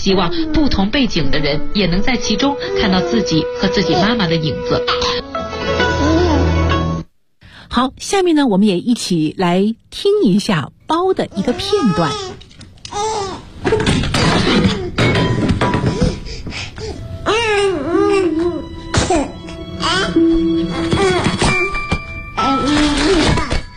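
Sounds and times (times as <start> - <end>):
speech: 0.0 - 5.3, 7.7 - 12.4
soft music: 0.0 - 7.1, 14.4 - 23.7
animated infant character babbling and cooing: 5.9 - 6.6, 11.3 - 13.4, 16.8 - 21.7, 22.4 - 23.6.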